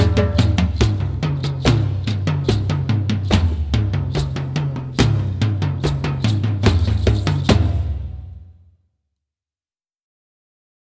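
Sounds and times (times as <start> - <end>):
rhythmic music: 0.0 - 8.1.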